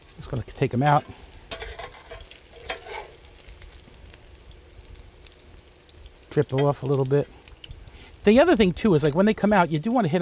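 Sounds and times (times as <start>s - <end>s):
food frying in olive oil: 0.0s - 10.2s
speech: 0.2s - 1.2s, 6.4s - 7.4s, 8.2s - 10.2s
scraping in a pan: 0.8s - 3.6s.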